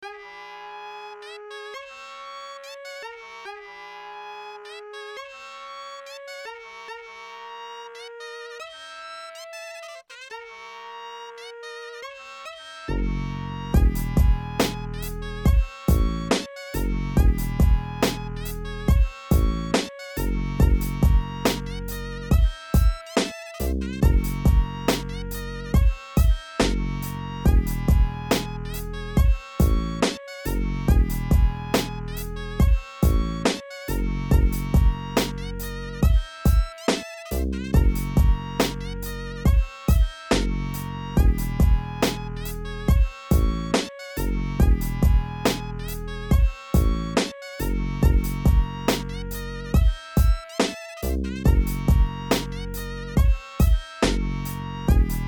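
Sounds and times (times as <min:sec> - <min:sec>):
blues instrumental music: 0:13.8 - 0:49.6, 0:50.2 - 0:55.2.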